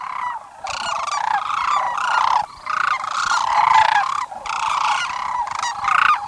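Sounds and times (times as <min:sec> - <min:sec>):
sandhill cranes giving rolling trumpeting calls in spring courtship: 0:00.0 - 0:06.2.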